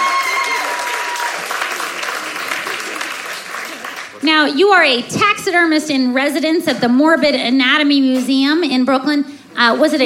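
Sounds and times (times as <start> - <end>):
audience applause for a guest at a live interview: 0.0 - 4.2
speech: 4.3 - 10.0.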